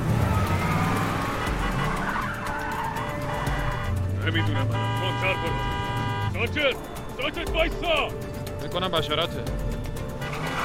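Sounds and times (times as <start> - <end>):
cars skidding in a car chase: 0.0 - 6.7, 10.2 - 10.6
car chase engine roaring: 0.0 - 10.6
speech: 4.3 - 5.8, 6.4 - 9.8.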